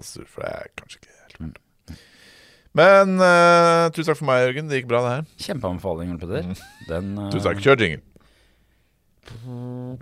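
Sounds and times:
speech: 0.0s - 2.1s, 2.7s - 8.1s, 9.2s - 9.9s
fart: 9.2s - 9.9s.

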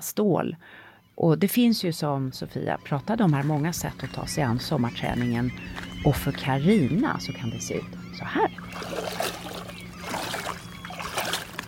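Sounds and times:
speech: 0.0s - 9.3s
low hum: 1.7s - 11.6s
water lapping at a lakeside bathing spot: 2.0s - 11.6s.

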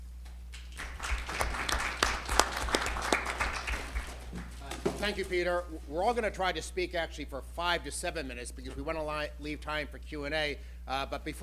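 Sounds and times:
crowd applauding a speaker: 0.6s - 4.9s
speech: 5.0s - 11.4s.

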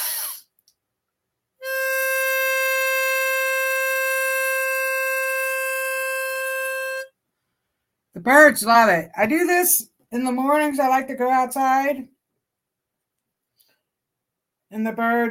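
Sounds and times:
brief rush of breath: 0.0s - 0.5s
whistle blown with one long exhale: 1.6s - 7.1s
speech: 8.2s - 12.1s, 14.7s - 15.2s.

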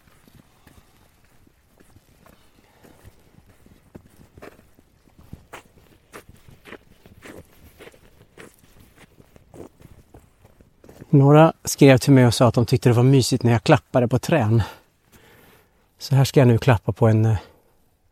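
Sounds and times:
footsteps walking outdoors: 0.0s - 13.0s
speech: 11.1s - 14.8s, 16.0s - 17.5s.

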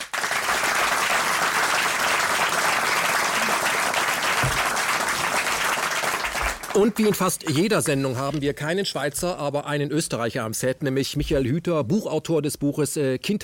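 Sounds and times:
studio audience applause: 0.0s - 7.3s
speech: 6.8s - 13.4s.

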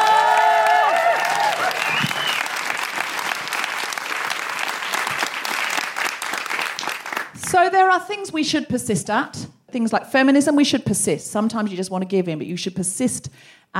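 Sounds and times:
audience applause welcoming a comedian to the stage: 0.0s - 7.4s
speech: 7.7s - 13.7s.

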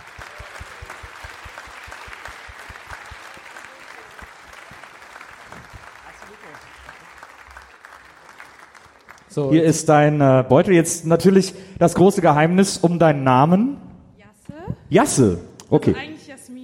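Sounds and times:
crowd murmur: 0.0s - 7.3s
audience applause: 0.0s - 9.6s
speech: 9.3s - 13.8s, 14.9s - 16.2s.

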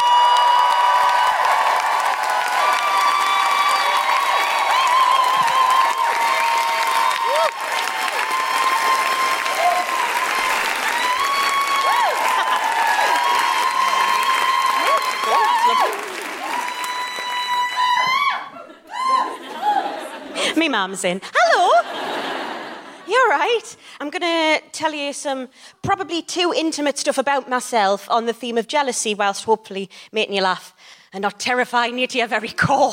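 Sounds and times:
Newcastle comedy audience clapping for a comedian: 0.0s - 18.4s
laughter: 12.2s - 13.2s, 18.5s - 20.6s, 21.4s - 23.1s
speech: 20.8s - 21.3s, 23.3s - 32.9s.

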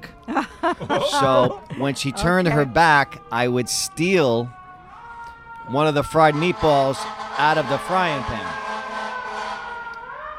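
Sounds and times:
fire truck siren wailing: 0.0s - 10.3s
laughter: 0.3s - 3.0s
speech: 0.3s - 4.6s, 5.7s - 8.6s.

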